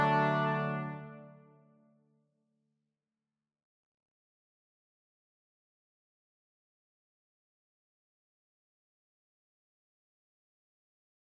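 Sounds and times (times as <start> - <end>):
brass quintet playing: 0.0 - 1.4.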